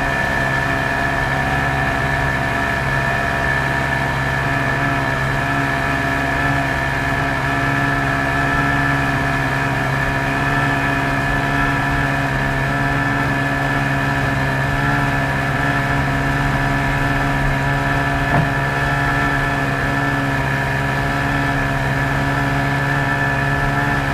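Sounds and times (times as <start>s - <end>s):
sport motorboat: 0.0s - 24.1s.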